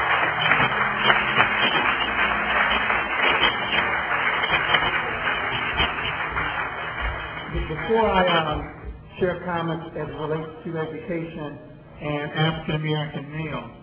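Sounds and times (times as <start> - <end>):
audience round of applause: 0.0 - 8.8
speech: 9.2 - 13.8.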